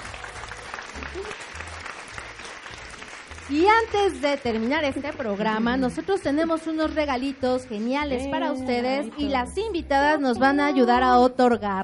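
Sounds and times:
audience applause: 0.0s - 8.1s
speech: 3.5s - 11.8s.

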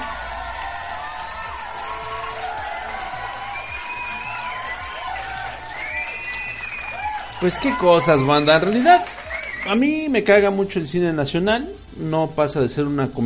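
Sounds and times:
whoops and shouts: 0.0s - 9.8s
crowd applauding: 0.0s - 9.9s
whistles: 3.3s - 10.0s
speech: 7.4s - 13.2s.

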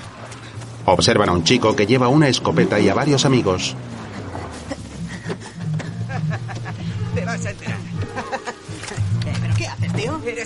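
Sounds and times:
car engine rumble arriving quickly at a scrapyard: 0.0s - 10.4s
speech: 0.8s - 4.0s
laughter: 4.1s - 9.2s.

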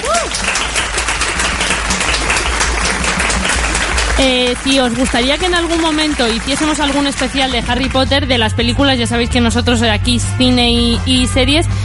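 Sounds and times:
crowd applause: 0.0s - 8.0s
speech: 4.2s - 11.8s.

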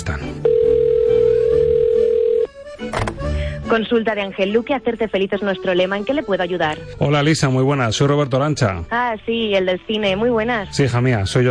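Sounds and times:
speech: 0.1s - 0.5s, 3.7s - 11.4s
electronic phone ringback tone: 0.4s - 2.5s.

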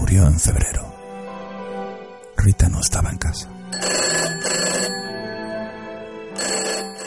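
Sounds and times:
speech: 0.1s - 0.9s, 2.5s - 3.5s
telephone ringing: 3.7s - 7.0s.

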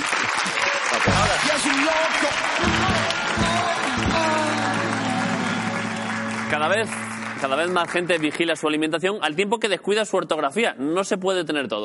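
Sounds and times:
audience applause: 0.0s - 8.9s
speech: 6.5s - 11.8s.

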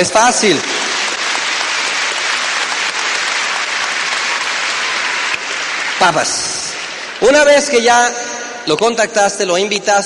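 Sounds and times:
speech: 0.0s - 0.8s, 6.0s - 6.6s, 7.2s - 10.0s
audience applause: 0.0s - 7.4s.

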